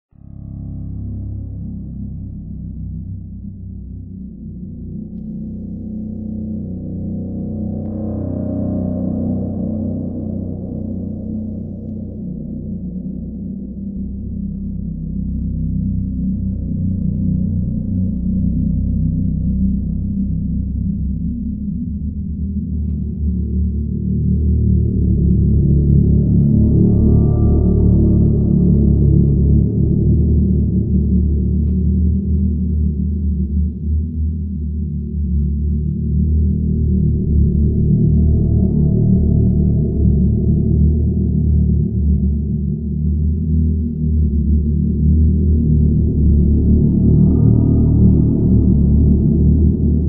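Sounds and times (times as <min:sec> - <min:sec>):
low bass: 0:00.0 - 0:50.0.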